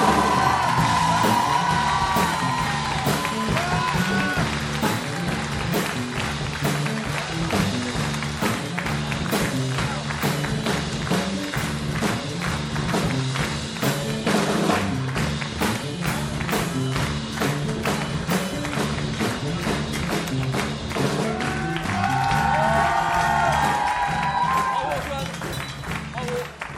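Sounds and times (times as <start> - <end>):
audience whoops and cheering yells: 0.0 - 5.4, 21.0 - 25.6
audience ovation clapping: 0.0 - 26.7.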